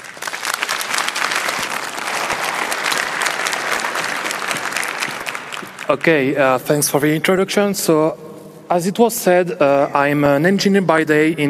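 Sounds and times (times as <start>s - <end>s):
audience applause: 0.0s - 6.4s
speech: 5.9s - 11.4s.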